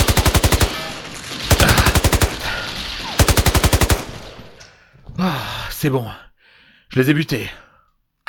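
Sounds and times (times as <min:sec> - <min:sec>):
automatic gunfire: 0:00.0 - 0:04.4
speech: 0:05.2 - 0:06.3, 0:06.9 - 0:07.6.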